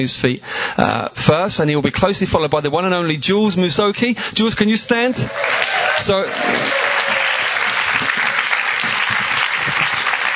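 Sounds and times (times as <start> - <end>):
speech: 0.0 - 6.9
audience applause: 5.2 - 10.3.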